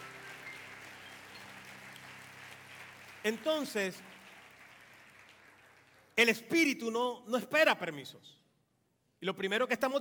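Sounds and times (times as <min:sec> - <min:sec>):
audience applauding: 0:00.0 - 0:06.2
speech: 0:03.2 - 0:04.2, 0:06.2 - 0:08.4, 0:09.2 - 0:09.9.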